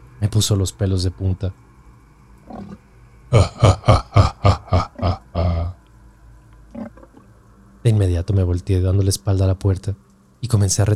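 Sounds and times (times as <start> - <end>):
speech: 0.2 - 1.6, 3.3 - 4.0, 8.6 - 10.9
growl: 2.5 - 5.8
mocking laugh: 3.3 - 5.8.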